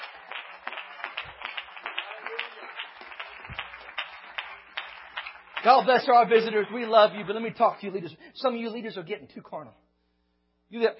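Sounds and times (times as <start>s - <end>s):
audience clapping: 0.0s - 8.0s
speech: 5.6s - 9.8s, 10.7s - 10.9s.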